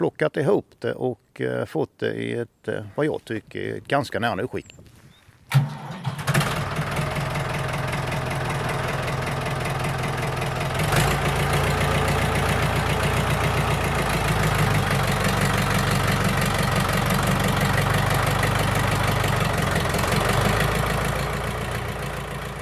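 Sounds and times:
speech: 0.0 - 4.9, 5.5 - 5.8
restored Ford Super Dexta tractor diesel engine idling: 5.5 - 22.6.

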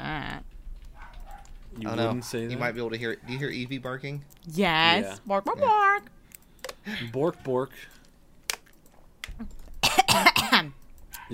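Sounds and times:
speech: 1.8 - 6.2, 6.9 - 8.0, 9.4 - 11.3
person coughing after choking on water: 9.8 - 10.7.

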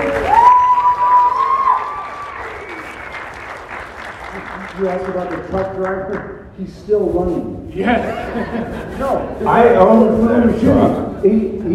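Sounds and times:
audience applause and cheering: 0.0 - 6.1
speech: 4.8 - 11.7
laughter: 7.7 - 10.2.

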